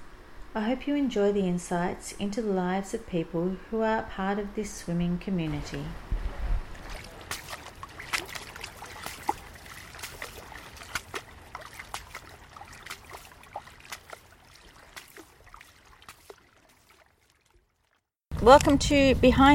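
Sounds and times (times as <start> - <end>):
speech: 0.6 - 6.0, 18.5 - 19.5
water lapping on the Elwood Beach shoreline: 5.0 - 18.6
soft scattered ticks and splashes: 6.7 - 18.1.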